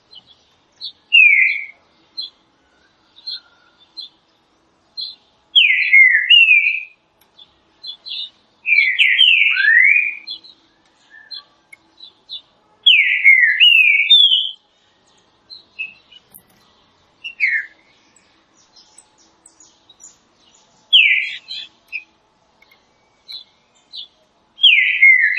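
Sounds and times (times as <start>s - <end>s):
green-winged saltator whistled song: 0.1s - 4.1s, 5.0s - 7.0s, 7.8s - 14.6s, 15.5s - 16.6s, 17.2s - 22.1s, 22.7s - 25.3s.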